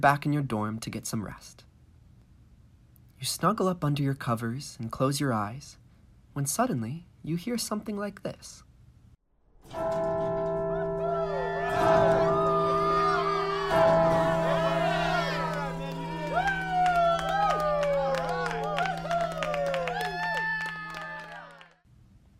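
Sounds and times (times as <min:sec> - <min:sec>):
speech: 0:00.0 - 0:01.7, 0:03.2 - 0:05.8, 0:06.4 - 0:08.7, 0:09.6 - 0:10.4
campus bell ringing: 0:09.7 - 0:21.3
crowd cheering: 0:10.4 - 0:21.8.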